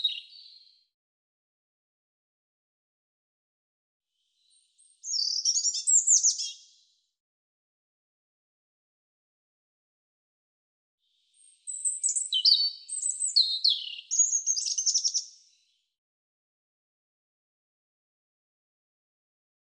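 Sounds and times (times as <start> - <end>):
European robin singing high phrases of slurred whistles and trills: 0.0 - 0.7, 4.4 - 6.8, 11.4 - 15.7.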